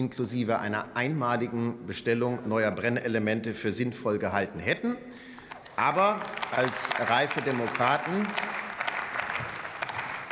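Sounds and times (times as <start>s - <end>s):
speech: 0.0s - 8.6s
applause from parliament benches: 5.4s - 10.3s.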